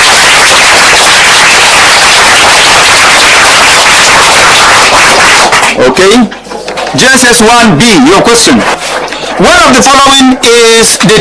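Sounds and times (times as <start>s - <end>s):
crowd applauding: 0.0s - 6.2s
speech: 6.0s - 8.8s, 9.4s - 11.2s.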